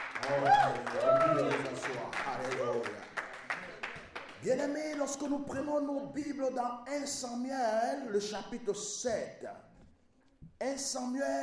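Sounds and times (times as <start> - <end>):
church congregation cheering with raised shouting voices: 0.0 - 4.5
church congregation applauding with scattered clapping: 0.0 - 5.7
speech: 0.2 - 1.7, 4.4 - 9.7, 10.6 - 11.4.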